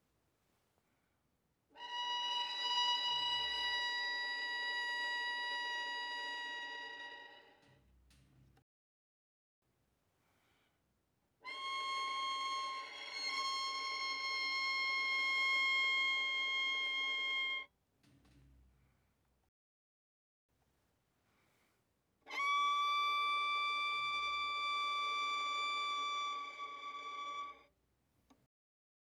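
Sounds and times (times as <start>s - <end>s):
violin played arco fortissimo on the D string: 1.8s - 7.8s, 11.5s - 17.7s, 22.3s - 27.7s.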